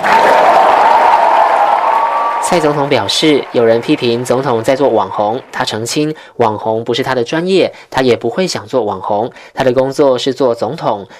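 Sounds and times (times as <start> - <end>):
audience applause: 0.0 - 6.1
speech: 2.5 - 11.1.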